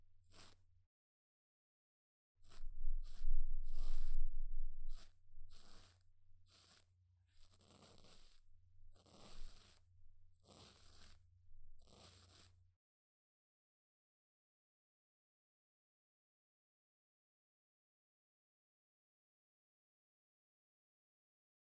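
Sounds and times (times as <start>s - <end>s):
razor shaving face and facial fuzz: 0.3s - 0.6s, 2.5s - 11.2s, 11.8s - 12.6s.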